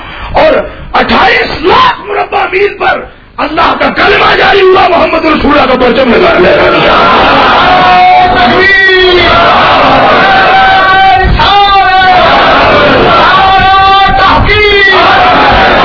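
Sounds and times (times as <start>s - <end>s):
speech: 0.4s - 10.1s
continuous crowd noise: 6.3s - 15.8s
large crowd at a religious gathering chanting a religious slogan: 9.2s - 10.8s, 12.1s - 15.8s.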